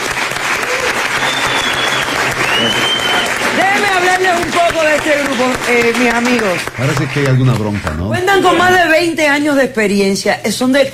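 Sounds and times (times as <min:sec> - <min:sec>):
crowd applause: 0:00.0 - 0:08.8
faint whistles from crowd: 0:01.1 - 0:03.4
speech: 0:04.2 - 0:10.9.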